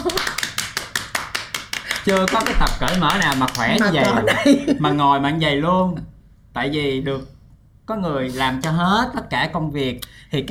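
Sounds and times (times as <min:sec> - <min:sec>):
hand clapping: 0:00.0 - 0:04.4
speech: 0:02.0 - 0:07.3, 0:07.9 - 0:10.4
laughter: 0:02.4 - 0:05.1.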